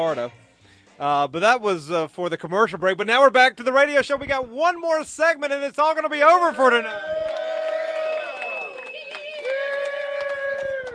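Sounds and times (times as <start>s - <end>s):
speech: 0.0s - 0.4s, 1.0s - 7.1s
crowd cheering: 6.4s - 10.9s.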